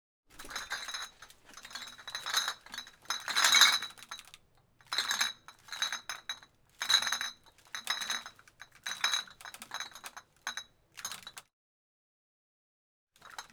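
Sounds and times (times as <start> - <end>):
glass bottle handling and moving in a bar: 0.4 - 4.3, 4.9 - 10.6.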